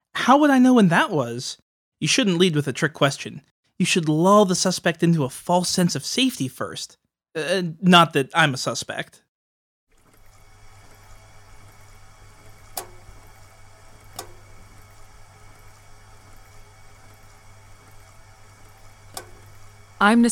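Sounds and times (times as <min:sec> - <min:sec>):
speech: 0:00.2 - 0:09.2, 0:20.0 - 0:20.2
radiator ticking: 0:10.0 - 0:20.2.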